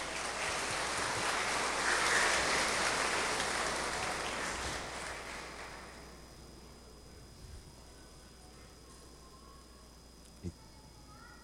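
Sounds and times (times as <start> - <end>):
round of applause: 0.0 - 6.2.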